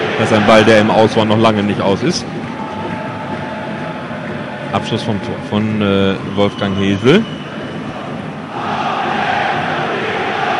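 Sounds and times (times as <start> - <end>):
football fans chanting in a stadium: 0.0 - 1.6, 2.2 - 5.5, 7.3 - 10.5
speech: 0.2 - 2.4, 4.7 - 7.4.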